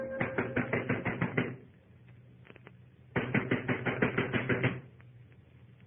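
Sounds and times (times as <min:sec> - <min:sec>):
banging on a door: 0:00.2 - 0:01.7, 0:03.1 - 0:04.9.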